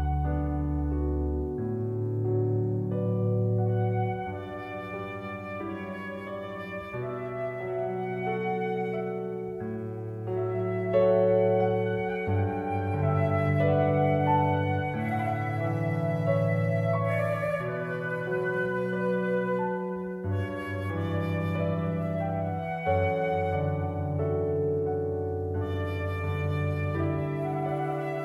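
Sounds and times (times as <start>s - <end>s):
flute: 0.0s - 28.2s
piano: 0.0s - 28.2s.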